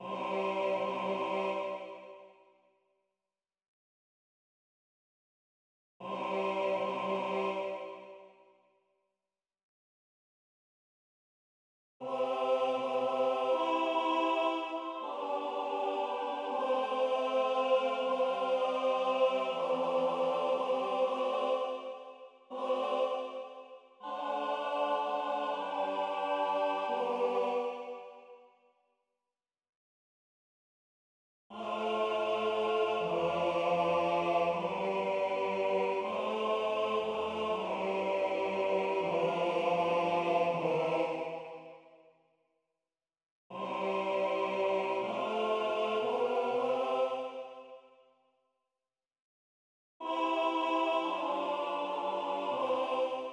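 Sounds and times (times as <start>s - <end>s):
choral music with tenor solo: 0.0s - 2.2s, 6.2s - 8.2s, 12.1s - 28.0s, 31.6s - 41.7s, 43.6s - 47.7s, 50.1s - 53.3s.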